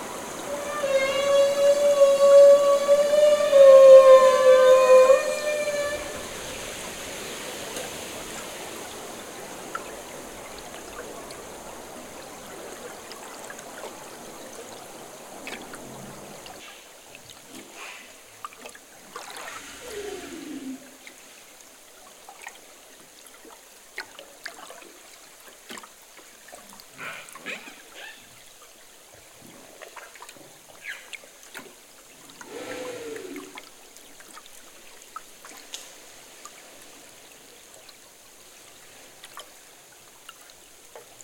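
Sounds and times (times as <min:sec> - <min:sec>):
humpback whale bubble net feeding: 0:00.0 - 0:14.1, 0:19.1 - 0:21.2, 0:32.3 - 0:34.0.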